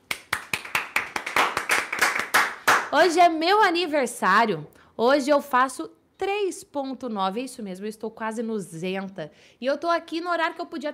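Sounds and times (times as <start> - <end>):
clapping: 0.0 - 2.9
speech: 2.9 - 10.9.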